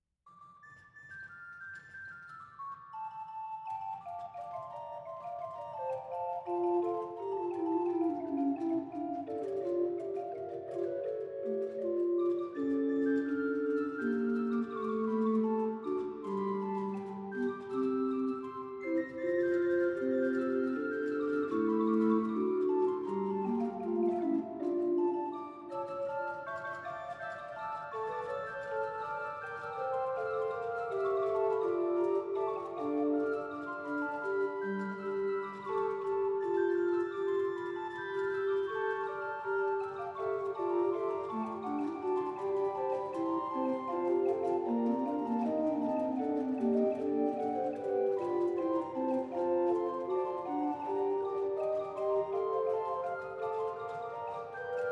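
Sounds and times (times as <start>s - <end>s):
flute: 0.3s - 54.9s.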